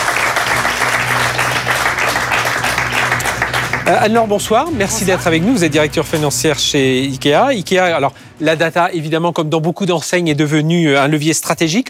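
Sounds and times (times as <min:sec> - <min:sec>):
sustained audience applause: 0:00.0 - 0:06.5
low hum: 0:00.0 - 0:10.7
speech: 0:03.9 - 0:11.8.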